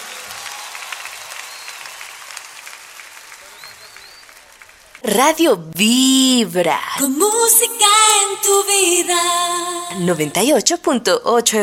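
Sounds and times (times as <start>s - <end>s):
audience applause: 0.0s - 5.0s
speech: 5.1s - 11.6s.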